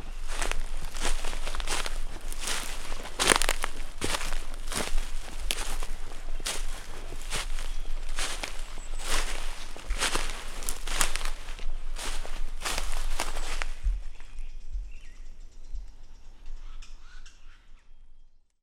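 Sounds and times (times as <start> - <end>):
person walking: 0.0 - 14.3.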